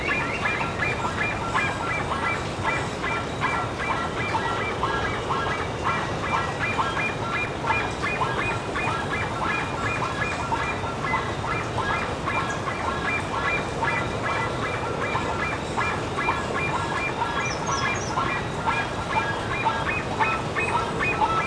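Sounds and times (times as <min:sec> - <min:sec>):
bird honking: 0:00.0 - 0:21.4.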